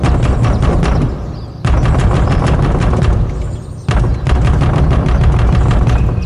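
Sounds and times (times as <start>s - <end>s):
fist pounding on wooden door: 0.0s - 6.2s.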